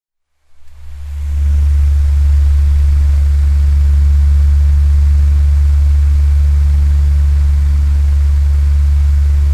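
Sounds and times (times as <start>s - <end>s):
fan whirring: 0.5s - 9.4s.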